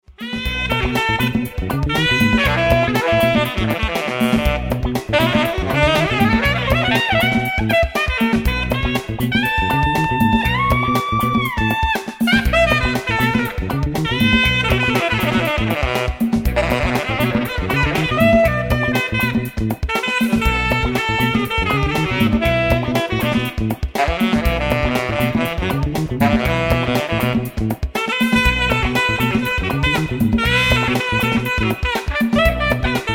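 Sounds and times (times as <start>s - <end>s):
funk music: 0.0s - 33.1s.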